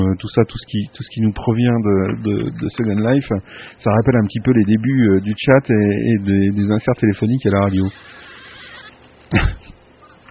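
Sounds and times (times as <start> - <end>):
speech: 0.1 - 8.2, 9.3 - 9.8
cat sounds from Second Life virtual world: 7.9 - 9.0.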